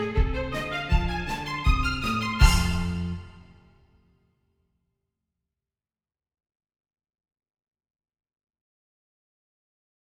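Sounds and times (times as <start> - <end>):
French horns playing a warm-up in fifths: 0.0 - 3.5.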